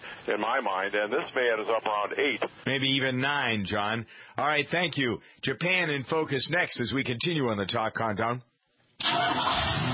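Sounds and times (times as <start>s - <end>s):
speech: 0.2s - 9.9s
car engine starting: 9.0s - 9.9s.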